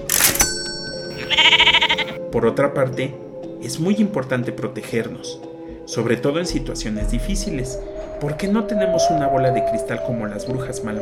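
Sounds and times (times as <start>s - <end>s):
sheep bleating: 1.2s - 2.2s
speech: 2.3s - 11.0s.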